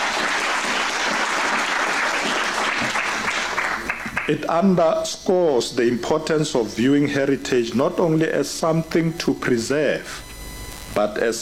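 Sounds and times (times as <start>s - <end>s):
audience applause: 0.0s - 4.4s
speech: 4.3s - 10.3s, 11.0s - 11.3s.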